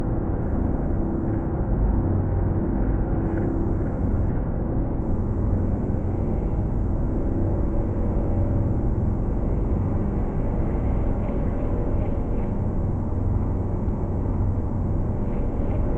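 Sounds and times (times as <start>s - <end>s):
low spaceship interior hum: 0.0s - 15.9s.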